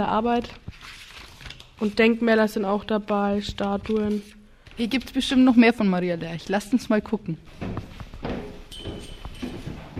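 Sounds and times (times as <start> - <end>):
speech: 0.0 - 1.0, 1.8 - 8.0
footsteps climbing stairs: 7.4 - 9.9.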